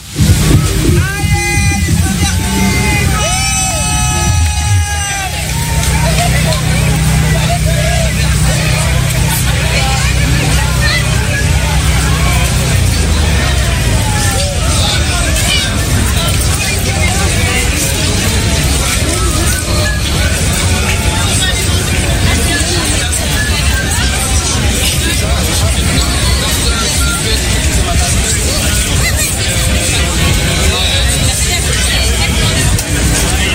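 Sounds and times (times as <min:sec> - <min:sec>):
low rumble: 0:00.0 - 0:10.4
outdoor babble of many voices: 0:00.0 - 0:33.5.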